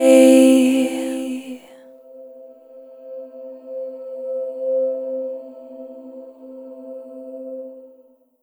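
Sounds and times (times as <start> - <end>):
vocal chord C E third: 0.0 - 1.7.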